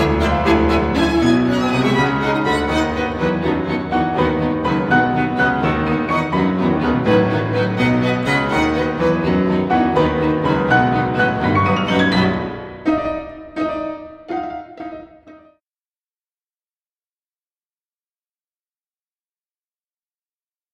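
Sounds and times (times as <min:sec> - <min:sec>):
piano third movement: 0:00.0 - 0:15.6.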